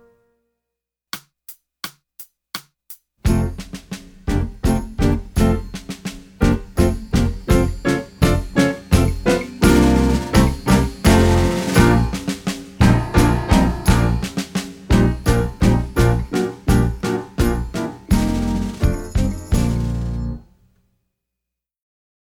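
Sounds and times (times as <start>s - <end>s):
staccato music piece: 3.3s - 20.4s.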